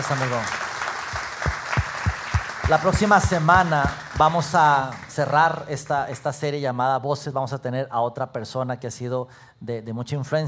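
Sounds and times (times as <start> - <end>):
speech: 0.0 - 0.6, 2.7 - 10.4
audience applause: 0.0 - 5.9.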